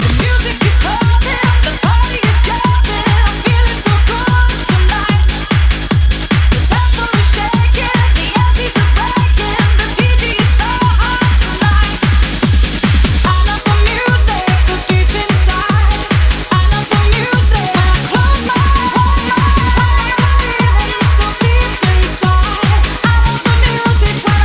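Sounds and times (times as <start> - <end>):
pumping music: 0.0 - 24.4.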